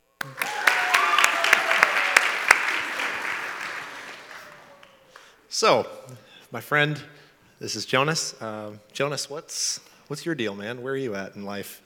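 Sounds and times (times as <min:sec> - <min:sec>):
church audience applause: 0:00.0 - 0:05.3
speech: 0:05.6 - 0:11.8.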